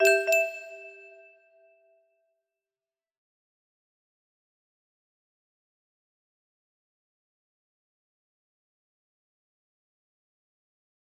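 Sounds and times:
music box melody: 0.0 - 1.3.

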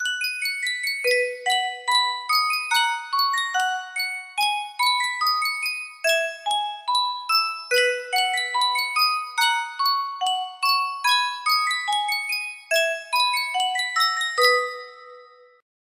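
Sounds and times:
music box: 0.0 - 15.6.

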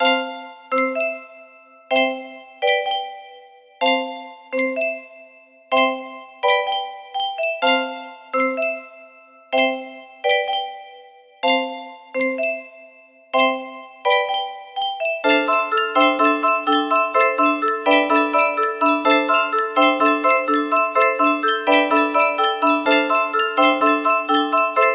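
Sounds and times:
music box melody: 0.0 - 24.9.

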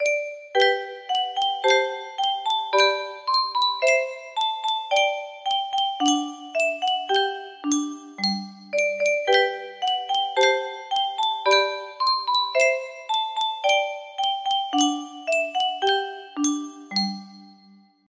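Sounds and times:
music box melody: 0.0 - 17.8.

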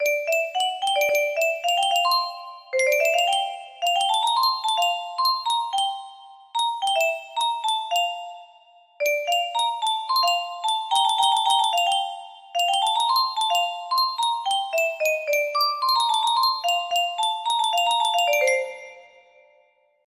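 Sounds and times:
music box: 0.0 - 19.7.

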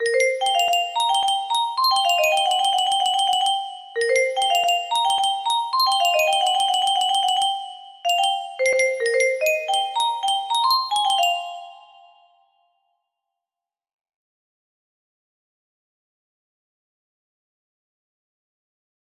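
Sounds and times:
music box: 0.0 - 12.6.

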